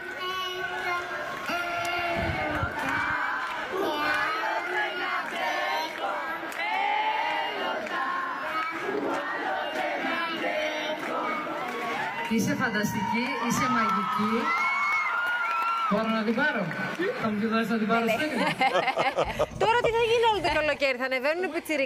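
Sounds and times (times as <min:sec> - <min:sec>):
live concert crowd at the Katrakio theatre singing along: 0:00.0 - 0:12.2
concert crowd shouting and cheering: 0:00.0 - 0:20.4
speech: 0:12.3 - 0:14.6, 0:15.9 - 0:21.8
laughter: 0:18.0 - 0:20.5.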